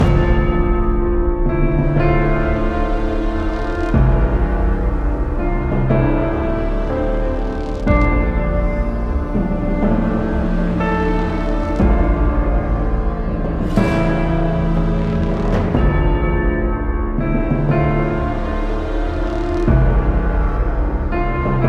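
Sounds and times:
background music loop: 0:00.0 - 0:21.6.

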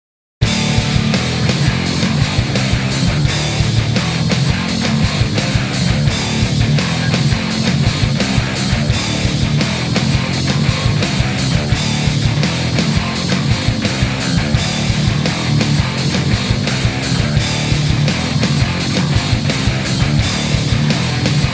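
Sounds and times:
heavy hard racing jukebox music: 0:00.4 - 0:21.5.

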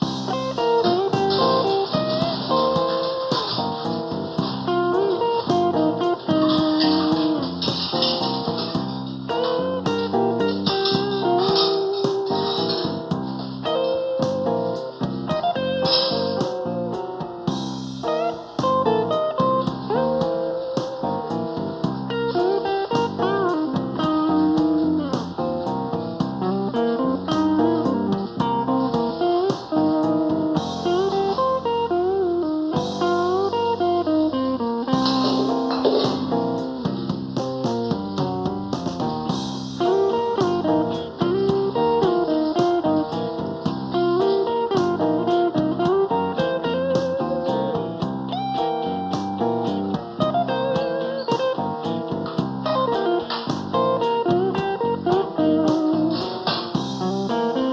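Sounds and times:
casino blues music: 0:00.0 - 0:57.7.

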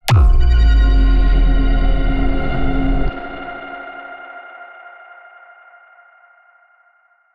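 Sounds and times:
low cinematic impact: 0:00.0 - 0:03.7.

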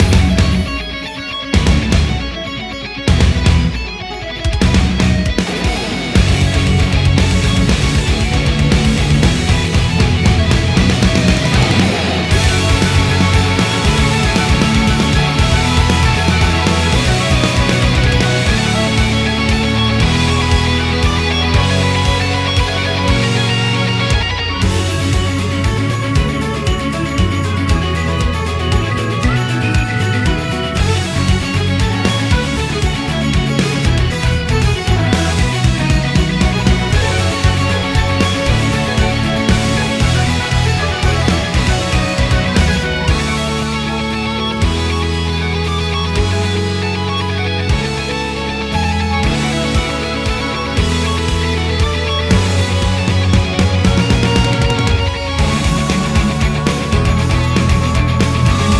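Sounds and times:
dungeon treasure battle game music: 0:00.0 - 0:58.7.

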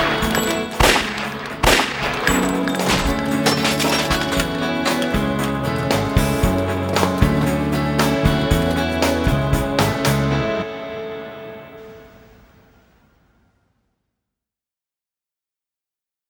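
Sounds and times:
instrumental music: 0:00.0 - 0:11.9.

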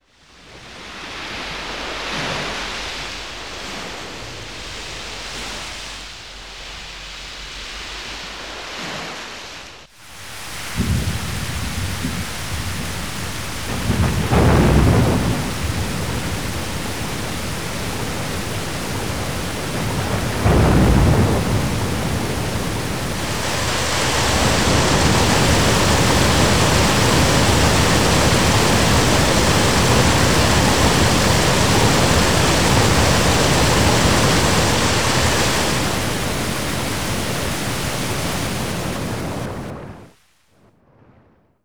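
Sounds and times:
storm: 0:00.4 - 0:40.2.

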